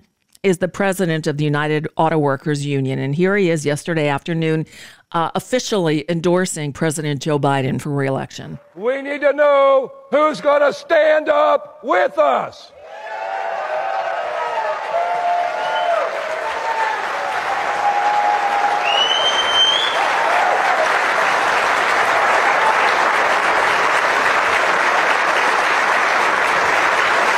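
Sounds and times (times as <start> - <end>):
speech: 0.4 - 13.2
audience applause at political rally: 12.8 - 27.3.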